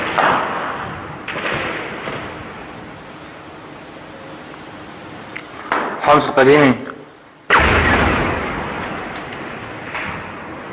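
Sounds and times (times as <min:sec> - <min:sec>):
artillery shell explosion in the old city of Homs: 0:00.0 - 0:02.9, 0:07.5 - 0:10.7
speech: 0:06.1 - 0:06.9.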